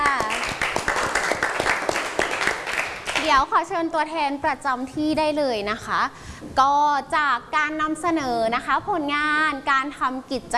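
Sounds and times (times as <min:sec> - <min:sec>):
classroom applause: 0:00.0 - 0:03.4
speech: 0:03.3 - 0:10.5.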